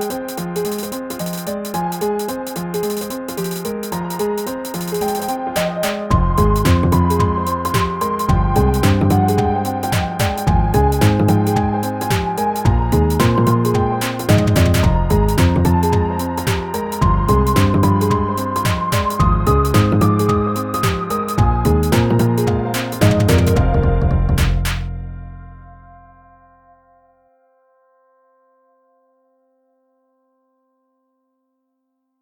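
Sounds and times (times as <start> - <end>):
machine gun swing music: 0.0 - 24.9.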